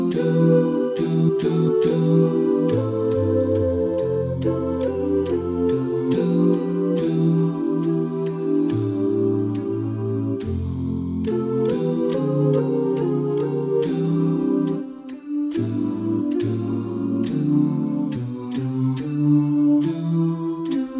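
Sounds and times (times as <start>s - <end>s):
bass: 0.0s - 14.8s, 15.6s - 20.8s.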